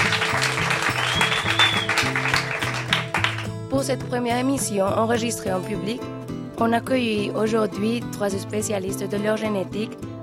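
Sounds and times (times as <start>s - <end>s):
audience applause: 0.0s - 3.6s
rhythmic musical bass line: 0.0s - 5.9s
speech: 3.8s - 10.1s.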